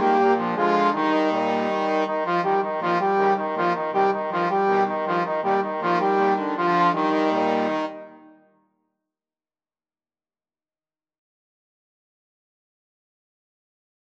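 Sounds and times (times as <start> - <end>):
trombone quartet playing: 0.0 - 8.3.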